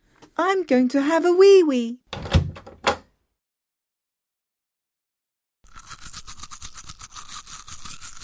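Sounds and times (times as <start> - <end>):
speech: 0.4 - 2.0
child brushing teeth with a toothbrush and toothpaste: 5.6 - 8.2.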